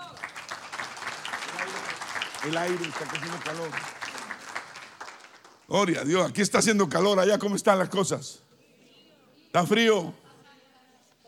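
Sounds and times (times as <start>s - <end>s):
applause: 0.0s - 6.0s
speech: 2.4s - 4.0s, 5.7s - 8.5s, 9.5s - 10.2s.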